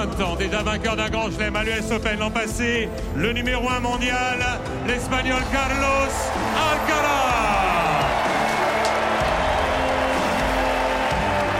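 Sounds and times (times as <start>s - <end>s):
speech: 0.1s - 7.9s
large stadium crowd applauding: 5.0s - 11.5s.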